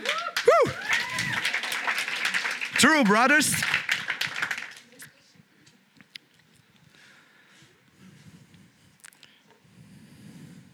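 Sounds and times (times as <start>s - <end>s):
person clapping: 0.0s - 4.9s
speech: 2.8s - 3.8s.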